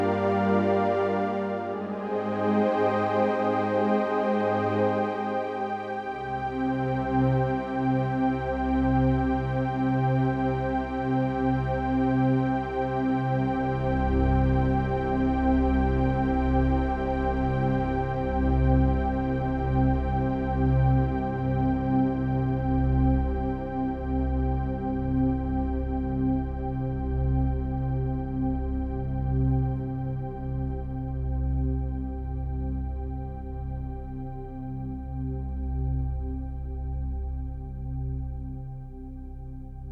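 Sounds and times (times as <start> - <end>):
Roland System8 synthesizer: 0.0 - 39.9.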